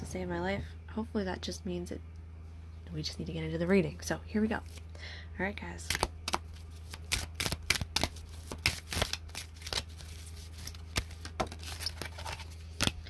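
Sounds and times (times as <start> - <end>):
speech: 0.1 - 2.2, 2.9 - 6.1
tarot cards being shuffled with cards flipping out of the deck: 5.9 - 13.0.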